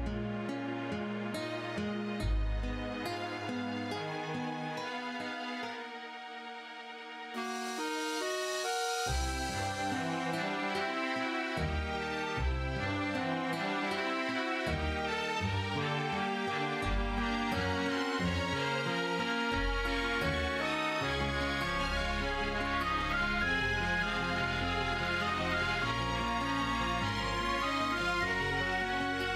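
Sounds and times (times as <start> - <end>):
musical accompaniment: 0.0 - 29.3.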